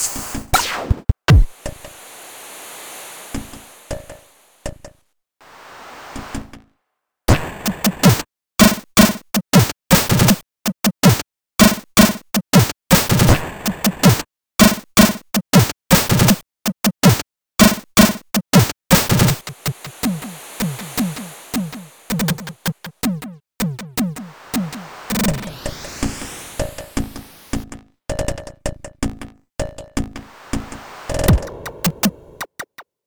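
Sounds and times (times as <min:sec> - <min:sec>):
computer drums: 0:00.0 - 0:02.1, 0:07.3 - 0:10.4, 0:11.0 - 0:27.8, 0:30.0 - 0:32.2.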